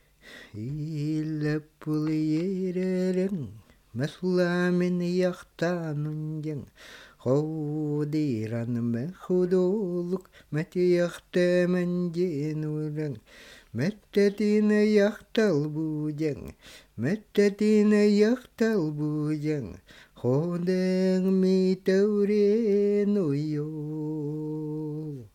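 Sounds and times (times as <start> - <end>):
person singing: 0.5 - 13.2, 13.8 - 25.3.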